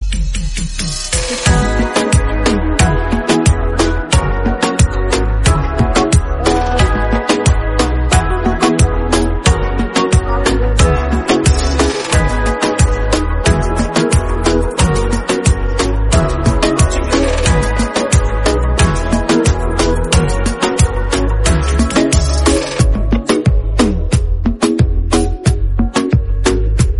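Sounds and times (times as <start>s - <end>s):
instrumental music: 0.0s - 26.9s.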